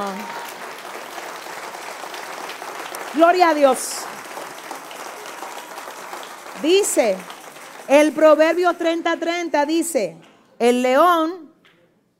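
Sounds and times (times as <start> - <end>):
speech: 0.0 - 0.4, 3.1 - 4.2, 6.6 - 11.4
audience applause: 0.0 - 9.0.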